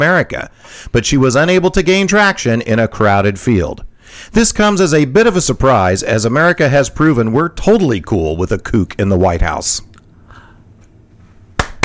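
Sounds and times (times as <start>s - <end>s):
speech: 0.0s - 9.9s
quiet low hum: 0.0s - 11.8s
sharp loud hand claps: 11.6s - 11.8s.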